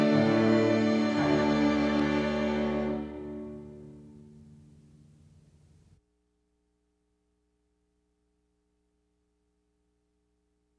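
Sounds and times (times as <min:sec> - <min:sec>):
strings: 0:00.0 - 0:05.2.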